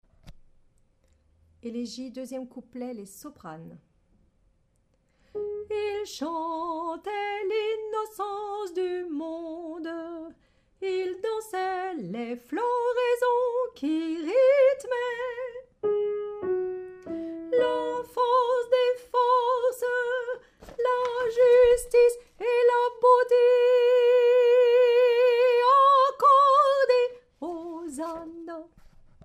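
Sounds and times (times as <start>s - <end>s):
soprano singing: 5.4s - 28.8s.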